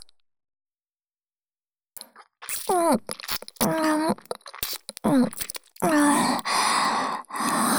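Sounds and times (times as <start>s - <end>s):
adult kissing: 2.0s - 6.6s
ear licking: 2.4s - 7.6s.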